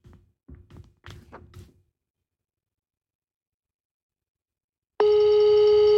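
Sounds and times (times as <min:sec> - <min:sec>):
telephone ringing on speakerphone: 0:05.0 - 0:05.9.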